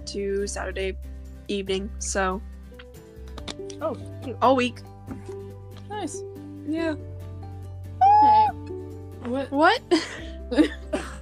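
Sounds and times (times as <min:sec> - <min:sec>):
speech: 0:00.1 - 0:02.5, 0:03.6 - 0:07.2, 0:09.2 - 0:10.9
person screaming: 0:08.0 - 0:08.6.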